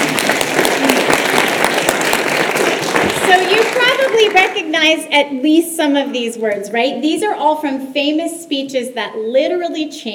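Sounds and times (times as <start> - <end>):
audience applause: 0.0 - 4.9
speech: 4.2 - 10.1.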